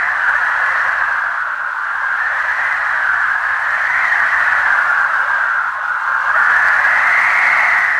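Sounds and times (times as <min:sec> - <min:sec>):
wind: 0:00.0 - 0:07.9.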